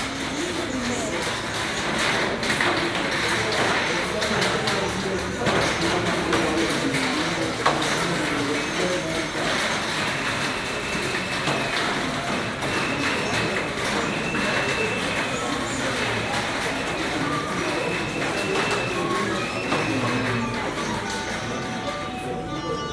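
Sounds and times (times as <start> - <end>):
overlapping voices in Lubumbashi: 0.0 - 22.9.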